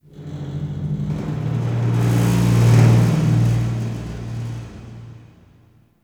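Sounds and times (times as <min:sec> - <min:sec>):
metal rumbles: 0:00.1 - 0:05.8.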